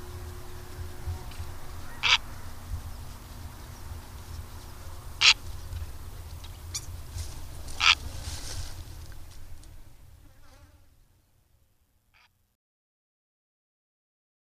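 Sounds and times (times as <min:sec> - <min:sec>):
Purple heron giving short harsh rasping calls: 0:00.0 - 0:08.2.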